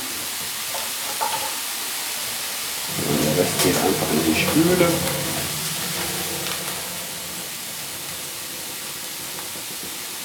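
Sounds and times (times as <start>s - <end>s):
can liquid poured into sizzling sauce: 2.9s - 9.5s
speech: 3.0s - 5.2s.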